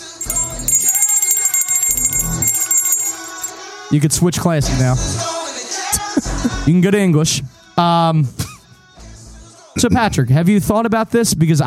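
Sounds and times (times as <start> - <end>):
bell ringing: 0.0 - 3.5
speech: 3.9 - 5.4, 6.4 - 8.4, 9.8 - 11.6.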